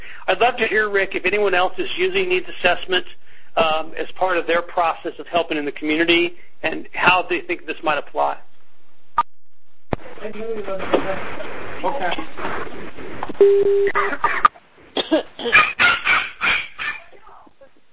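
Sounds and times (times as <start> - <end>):
speech: 0.3 - 8.5, 10.2 - 15.9
brief electronic tone: 13.4 - 14.0
dog barking: 15.5 - 17.1.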